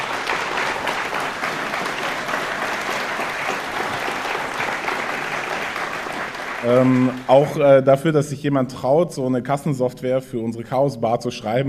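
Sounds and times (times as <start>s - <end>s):
crowd applause: 0.0s - 7.8s
speech: 6.6s - 11.6s.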